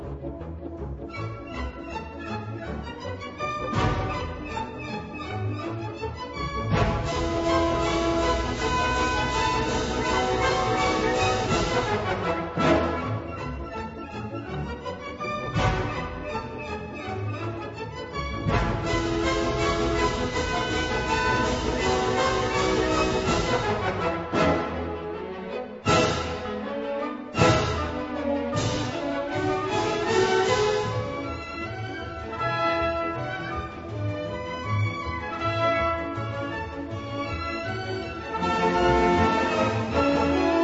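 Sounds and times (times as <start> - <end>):
polka music: 0.0 - 40.6.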